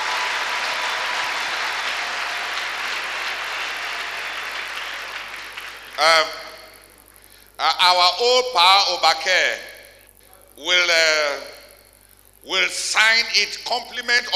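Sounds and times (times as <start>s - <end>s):
audience applauding: 0.0s - 6.5s
speech: 6.0s - 6.4s, 7.6s - 9.7s, 10.6s - 11.6s, 12.4s - 14.3s.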